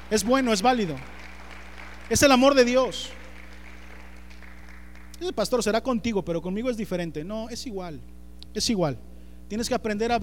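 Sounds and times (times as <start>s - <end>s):
audience applause: 0.0s - 5.2s
speech: 0.1s - 1.2s, 2.1s - 3.2s, 5.2s - 10.2s.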